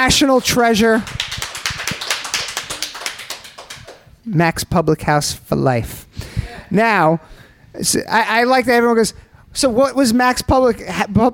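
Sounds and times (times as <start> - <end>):
speech: 0.0 - 1.2, 4.3 - 11.3
small audience clapping to welcome a guest: 0.8 - 4.1.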